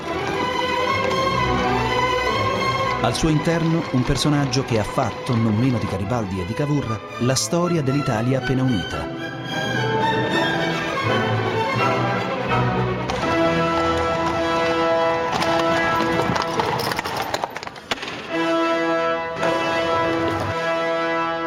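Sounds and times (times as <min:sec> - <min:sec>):
hooves of a horse-drawn carriage arriving in Turin: 0:00.0 - 0:05.9, 0:11.8 - 0:18.2, 0:19.4 - 0:20.7
sustained music: 0:00.0 - 0:21.4
speech: 0:03.0 - 0:09.6.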